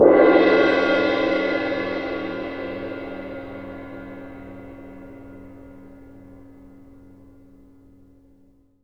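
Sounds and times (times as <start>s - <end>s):
percussion cymbal: 0.0s - 8.2s.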